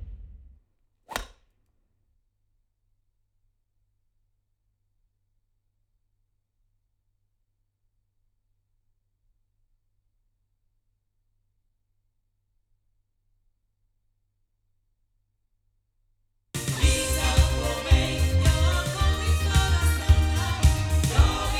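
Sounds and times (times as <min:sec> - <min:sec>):
music from loudspeakers: 0:16.6 - 0:21.5.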